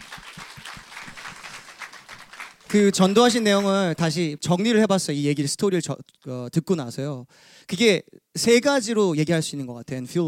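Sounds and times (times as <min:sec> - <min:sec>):
audience applauding: 0:00.0 - 0:04.2
speech: 0:02.7 - 0:10.2.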